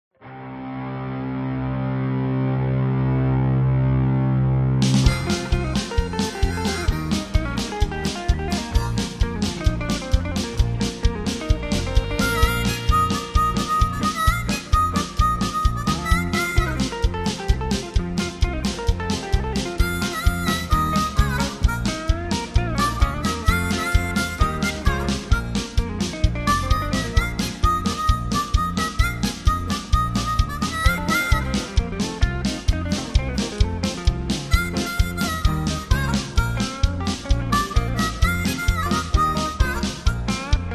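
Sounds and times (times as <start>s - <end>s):
instrumental music: 0.2s - 40.7s.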